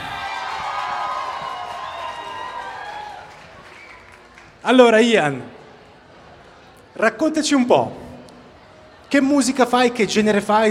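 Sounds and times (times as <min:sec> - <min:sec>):
scattered shouts and whoops: 0:00.0 - 0:03.5
crowd clapping and cheering: 0:00.0 - 0:04.8
speech: 0:04.6 - 0:05.6, 0:07.0 - 0:08.0, 0:09.1 - 0:10.6.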